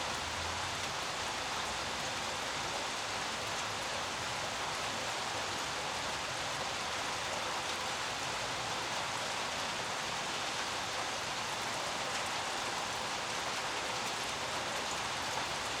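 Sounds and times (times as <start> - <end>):
light rain on street: 0.0 - 15.7.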